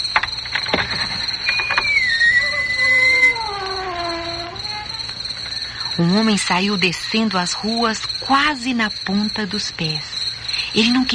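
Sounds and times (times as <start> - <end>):
door creaking open slowly: 0.0 - 5.7
speech: 6.0 - 10.1, 10.7 - 11.1.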